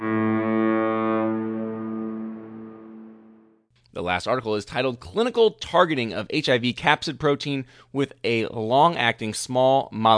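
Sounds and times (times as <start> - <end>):
ship horn blast: 0.0 - 3.6
speech: 4.0 - 10.1.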